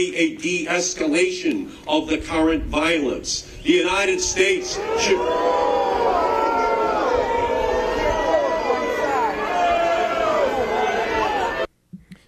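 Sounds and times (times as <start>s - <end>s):
speech: 0.0s - 6.1s
crowd booing: 3.7s - 11.7s.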